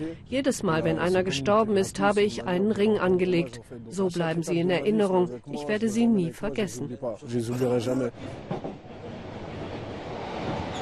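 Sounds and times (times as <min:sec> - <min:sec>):
speech: 0:00.0 - 0:08.8
train rumbling along the rail line from the suburbs toward Paris: 0:08.1 - 0:10.8.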